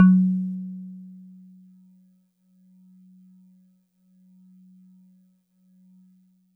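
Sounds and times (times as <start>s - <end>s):
Celeste DX100 F#1 synth note: 0.0s - 0.5s.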